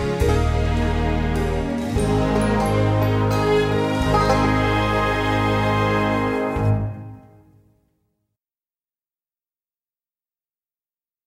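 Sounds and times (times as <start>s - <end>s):
instrumental music: 0.0s - 7.9s.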